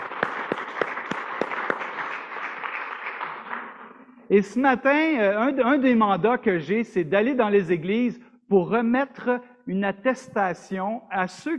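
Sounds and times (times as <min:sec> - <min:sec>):
audience applause: 0:00.0 - 0:04.2
speech: 0:04.3 - 0:11.5.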